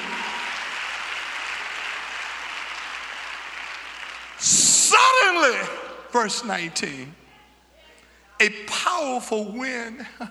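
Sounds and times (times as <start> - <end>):
crowd clapping: 0.0 - 5.5
speech: 5.1 - 7.2, 8.4 - 10.2.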